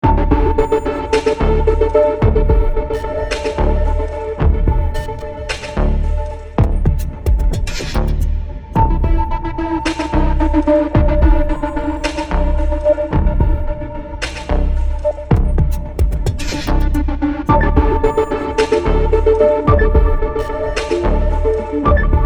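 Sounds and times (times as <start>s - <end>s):
rhythmic suspense music: 0.0s - 22.2s.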